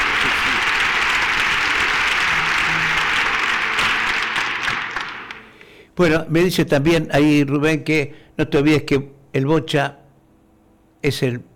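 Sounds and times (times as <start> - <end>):
applause: 0.0 - 5.7
speech: 6.0 - 10.0, 11.0 - 11.5.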